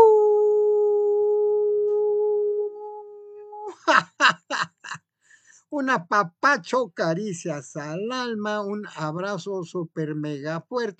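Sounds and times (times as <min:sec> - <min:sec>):
howl: 0:00.0 - 0:03.8
laughter: 0:03.7 - 0:05.0
speech: 0:05.8 - 0:10.9.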